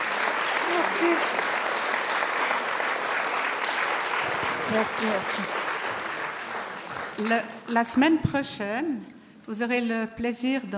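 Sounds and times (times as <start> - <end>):
audience applause: 0.0 - 7.6
speech: 0.7 - 1.5, 4.7 - 5.6, 7.2 - 10.7.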